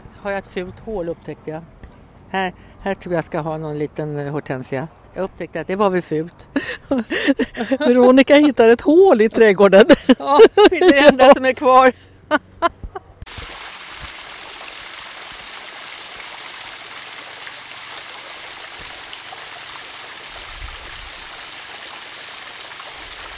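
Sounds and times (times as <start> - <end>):
speech: 0.2 - 12.5
laughter: 6.6 - 8.1, 9.9 - 11.4
garden waterfall rushing: 13.3 - 23.3.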